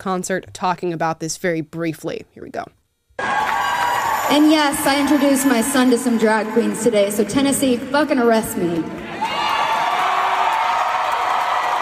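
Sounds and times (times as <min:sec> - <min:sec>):
speech: 0:00.0 - 0:02.8, 0:04.3 - 0:09.4
concert audience cheering and whooping: 0:03.2 - 0:07.2, 0:09.0 - 0:11.8.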